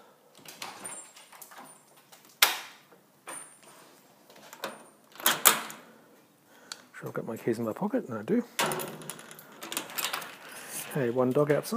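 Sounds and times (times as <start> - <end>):
faint rattles and shuffling: 0.3 - 11.7
house door opening and closing: 0.4 - 3.7, 4.3 - 5.9, 8.6 - 11.0
house door latch clacking: 4.6 - 5.8, 8.6 - 10.4
speech: 7.0 - 9.2, 10.9 - 11.7.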